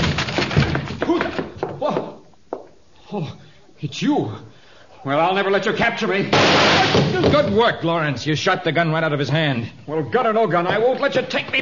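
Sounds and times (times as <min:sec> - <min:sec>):
wooden door being forced open: 0:00.0 - 0:01.6, 0:06.3 - 0:07.6
speech: 0:03.1 - 0:11.6.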